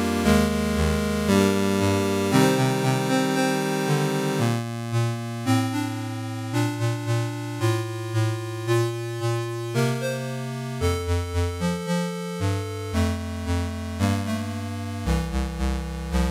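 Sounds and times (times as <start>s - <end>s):
retro chiptune music: 0.0s - 5.0s, 5.7s - 16.2s.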